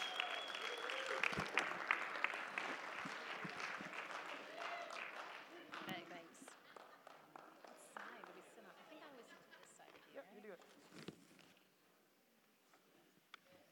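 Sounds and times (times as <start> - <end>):
audience clapping: 0.0 - 8.8.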